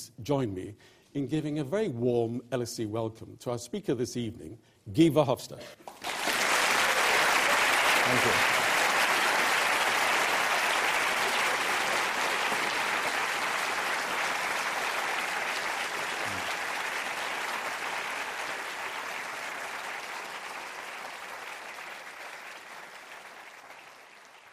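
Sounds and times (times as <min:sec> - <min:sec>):
speech: 0:00.2 - 0:06.0, 0:08.1 - 0:08.6
audience applause in a lecture hall: 0:05.8 - 0:24.5.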